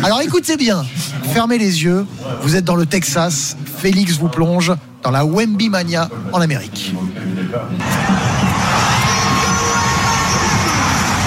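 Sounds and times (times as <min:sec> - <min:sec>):
speech: 0:00.0 - 0:08.0
Spurs fans yelling and whooping in San Antonio: 0:07.8 - 0:11.2.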